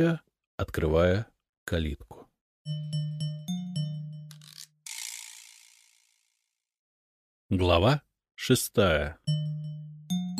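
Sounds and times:
speech: 0:00.0 - 0:03.1, 0:07.5 - 0:09.8
soft bronze bells on a fence chiming: 0:02.7 - 0:04.2, 0:09.3 - 0:10.3.

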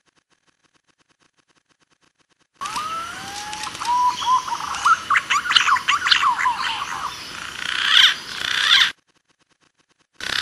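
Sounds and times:
green pigeons whistling: 0:02.6 - 0:08.9.

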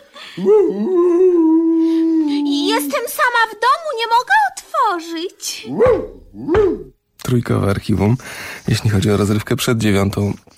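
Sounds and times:
speech: 0:00.4 - 0:01.7, 0:02.8 - 0:10.5
dog barking behind a door: 0:05.7 - 0:07.0.

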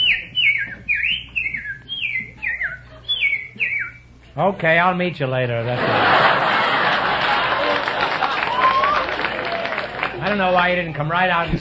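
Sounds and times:
person whistling an imitation of a bird call: 0:00.0 - 0:04.0
speech: 0:04.4 - 0:06.5, 0:10.3 - 0:11.5
laughter: 0:05.6 - 0:10.2.

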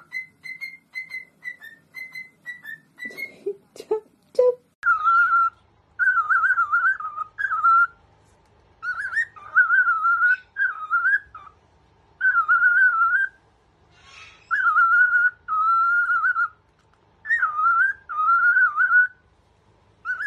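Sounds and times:
cockatiel whistling a song: 0:00.0 - 0:03.3, 0:04.8 - 0:08.0, 0:08.8 - 0:11.6, 0:12.2 - 0:13.4, 0:14.3 - 0:16.6, 0:17.2 - 0:19.2, 0:20.0 - 0:20.2.

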